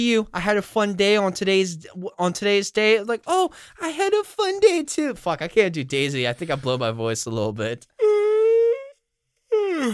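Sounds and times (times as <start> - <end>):
speech: 0.0 - 8.0, 9.8 - 9.9
person giving a voiced yawn: 8.0 - 9.9.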